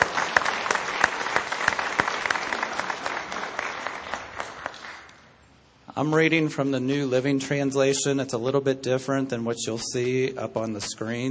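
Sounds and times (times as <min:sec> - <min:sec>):
audience applause: 0:00.0 - 0:05.2
speech: 0:06.0 - 0:11.2.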